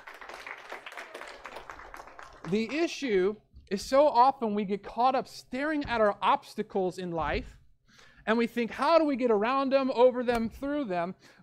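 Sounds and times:
group clapping: 0.0 - 3.1
speech: 2.5 - 7.6, 8.2 - 11.4.

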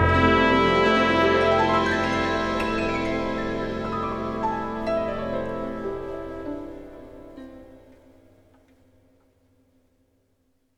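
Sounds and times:
cha cha cha music: 0.0 - 7.9.

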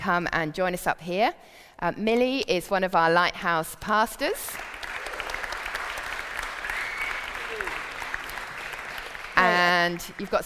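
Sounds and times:
speech: 0.0 - 4.8, 9.8 - 10.4
audience clapping in a Lighthouse service: 4.5 - 10.4.

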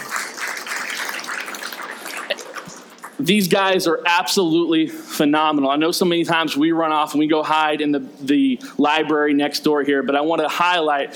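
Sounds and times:
audience applause: 0.0 - 3.1
speech: 3.2 - 11.1.

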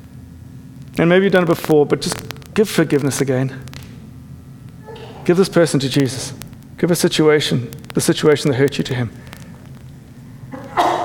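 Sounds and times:
speech: 1.0 - 3.7, 5.3 - 9.3
person sneezing: 4.8 - 5.3, 10.6 - 11.0.

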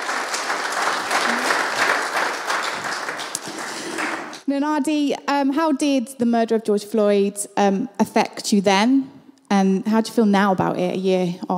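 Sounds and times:
audience applause: 0.0 - 4.4
speech: 4.5 - 11.5.

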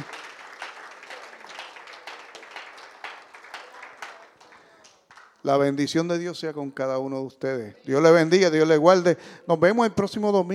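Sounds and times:
audience applause: 0.0 - 5.4
speech: 5.4 - 10.5.

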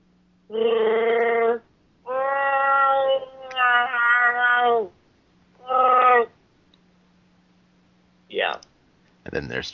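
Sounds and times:
speech: 0.5 - 0.8, 9.3 - 9.7
person imitating a Wookiee roar: 0.5 - 4.9.

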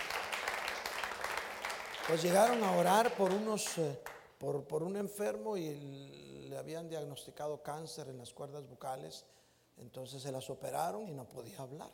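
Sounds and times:
audience applause: 0.0 - 3.8
speech: 2.1 - 11.9.

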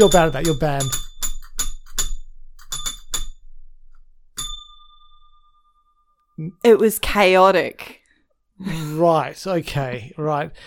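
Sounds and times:
speech: 0.0 - 1.0, 6.4 - 8.0, 8.6 - 10.6
spoiler bell ringing: 0.0 - 3.3, 4.4 - 6.4.

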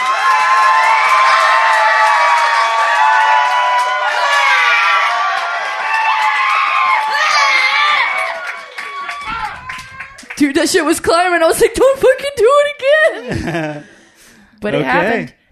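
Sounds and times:
live show audience cheering, whooping and shouting: 0.0 - 10.4
speech: 10.6 - 12.7, 13.3 - 13.9, 14.6 - 15.4
laughter: 13.0 - 14.1.

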